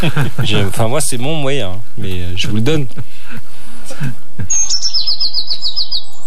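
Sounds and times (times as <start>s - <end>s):
laughter: 0.0s - 0.9s, 2.8s - 4.8s
speech: 0.0s - 5.8s
blue tit singing in a field: 4.5s - 6.2s.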